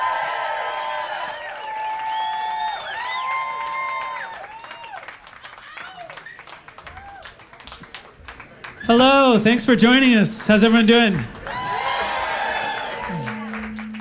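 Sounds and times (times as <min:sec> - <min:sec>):
audience applauding and cheering at a live show: 0:00.0 - 0:13.9
audience whistles: 0:02.0 - 0:03.1, 0:06.2 - 0:06.6
speech: 0:08.9 - 0:11.4.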